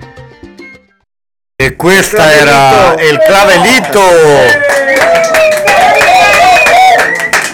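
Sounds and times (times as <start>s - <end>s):
speech: 1.6s - 5.8s
crowd cheering and whooping: 2.1s - 7.5s
audience applause: 2.2s - 7.5s.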